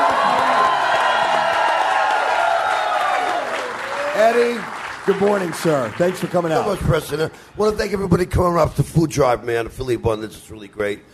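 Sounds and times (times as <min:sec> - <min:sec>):
clapping: 0:00.0 - 0:07.2
crowd cheering and whooping at a morning food drive event: 0:00.0 - 0:07.2
speech: 0:04.2 - 0:11.1.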